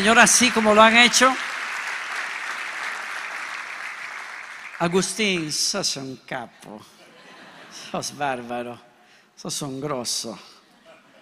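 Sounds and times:
speech: 0.0 - 1.5, 4.8 - 7.0, 7.7 - 10.6
crowd applauding: 0.0 - 5.4.

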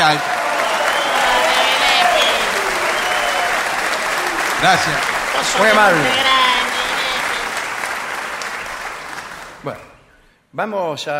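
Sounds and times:
speech: 0.0 - 0.4, 4.6 - 6.7, 9.6 - 9.8, 10.5 - 11.1
audience ovation applause: 0.0 - 9.8
laughter: 0.8 - 8.4.

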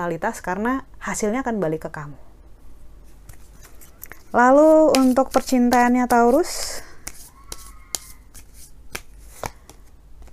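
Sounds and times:
speech: 0.0 - 2.3, 4.3 - 6.9
tarot cards being shuffled and drawn: 3.1 - 10.3.

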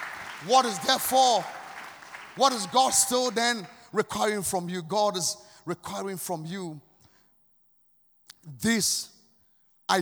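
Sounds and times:
scattered audience clapping: 0.0 - 3.7
speech: 0.4 - 1.6, 2.4 - 6.9, 8.4 - 9.1.

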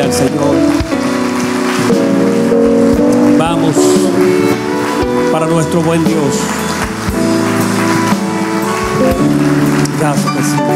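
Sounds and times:
audience applauding loudly: 0.0 - 10.7
sustained keyboard chords: 0.0 - 10.7
speech: 0.1 - 0.8, 3.7 - 6.7, 9.0 - 10.7.

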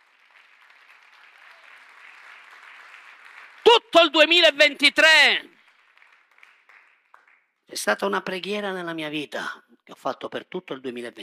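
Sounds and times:
audience applause: 0.0 - 7.4
speech: 3.8 - 5.5, 7.8 - 11.2.

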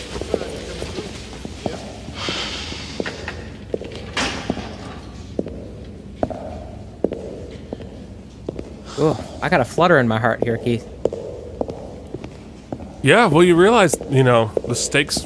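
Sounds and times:
constant noise: 0.0 - 15.2
footsteps of a person taking a long walk: 0.0 - 15.2
speech: 9.0 - 10.9, 13.0 - 15.2.

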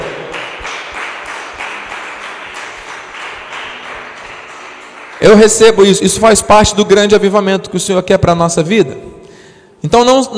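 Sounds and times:
audience applause: 0.0 - 5.7
speech: 5.2 - 9.1, 9.8 - 10.3.

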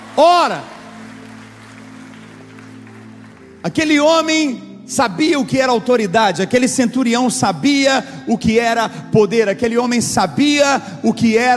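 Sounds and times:
audience applause: 0.0 - 3.6
sustained low keyboard chord: 0.0 - 11.5
speech: 0.2 - 0.8, 3.6 - 11.5.

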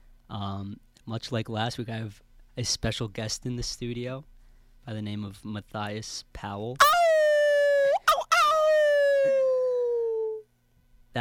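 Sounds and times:
speech: 0.6 - 7.0
person imitating a howl: 6.8 - 10.4.

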